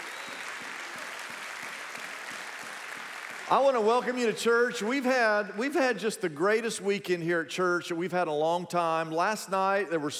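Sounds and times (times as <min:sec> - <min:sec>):
audience clapping: 0:00.0 - 0:04.7
speech: 0:03.5 - 0:10.1.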